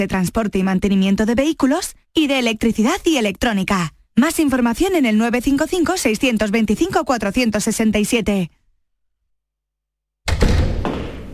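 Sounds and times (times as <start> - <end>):
speech: 0.0 - 8.6
house door being shut: 10.3 - 11.3.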